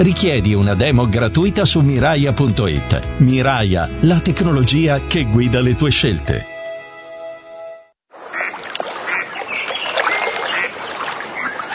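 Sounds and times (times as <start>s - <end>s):
speech: 0.0s - 6.5s
lake water splashing and lapping against a rowing boat on Lake Garda: 8.1s - 11.7s.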